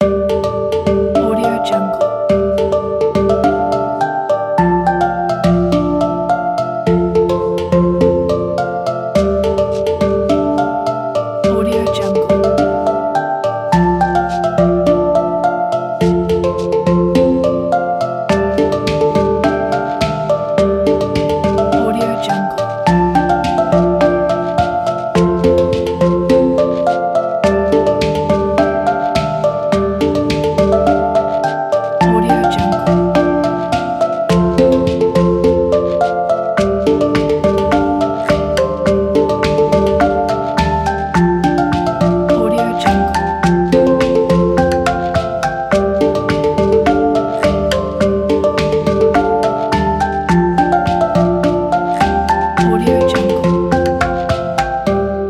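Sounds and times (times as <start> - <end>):
relaxing travel percussion: 0.0 - 55.2.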